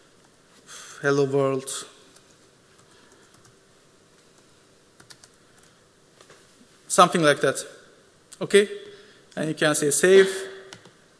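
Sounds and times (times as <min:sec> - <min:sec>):
speech: 0:01.0 - 0:01.9, 0:07.0 - 0:07.8, 0:08.4 - 0:10.5
faint computer keyboard typing: 0:02.1 - 0:03.6, 0:04.2 - 0:06.4, 0:10.7 - 0:11.0.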